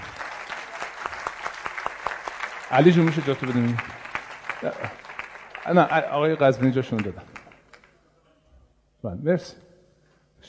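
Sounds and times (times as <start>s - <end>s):
audience applause welcoming an engineer to the stage: 0.0s - 7.9s
speech: 2.7s - 4.0s, 4.6s - 5.0s, 5.6s - 7.4s, 9.0s - 9.6s.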